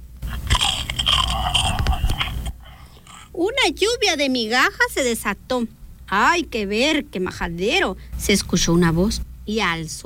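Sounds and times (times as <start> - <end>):
monster loudly crunching a cookie: 0.3 - 3.3
speech: 3.4 - 10.0.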